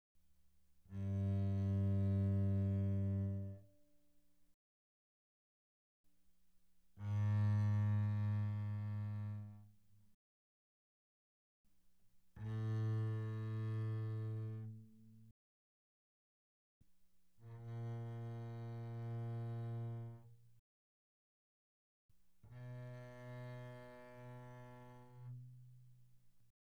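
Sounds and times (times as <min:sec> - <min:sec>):
double bass arco pianissimo on G string: 0:00.9 - 0:03.7, 0:07.0 - 0:09.7, 0:12.4 - 0:15.2, 0:17.4 - 0:20.3, 0:22.5 - 0:25.8.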